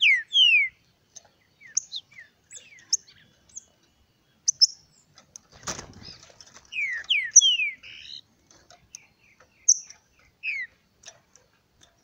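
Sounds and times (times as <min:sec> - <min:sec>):
green-winged saltator song of downslurred whistled notes: 0:00.0 - 0:00.8, 0:01.5 - 0:03.7, 0:04.4 - 0:05.0, 0:06.0 - 0:08.2, 0:08.9 - 0:10.8.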